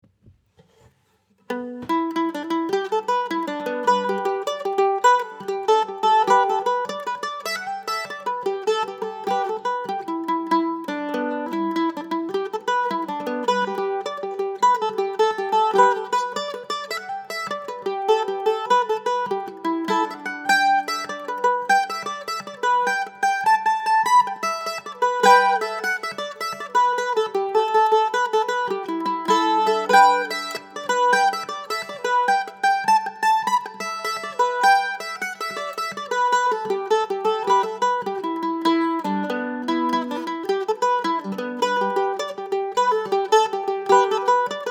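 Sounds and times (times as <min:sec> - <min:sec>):
mandolin: 0:00.2 - 0:44.6.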